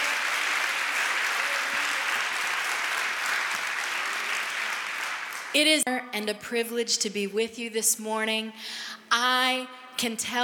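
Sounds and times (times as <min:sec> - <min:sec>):
audience clapping: 0:00.0 - 0:05.8
speech: 0:05.5 - 0:10.4.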